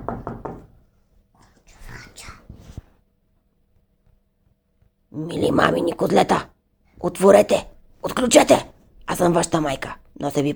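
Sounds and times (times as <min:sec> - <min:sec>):
knocking on a door: 0:00.0 - 0:00.8
speech: 0:05.2 - 0:10.5.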